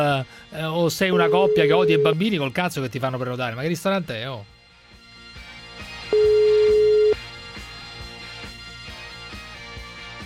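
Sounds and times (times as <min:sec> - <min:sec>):
speech: 0:00.1 - 0:04.6
telephone ringing with no answer: 0:01.1 - 0:02.2, 0:06.1 - 0:07.2.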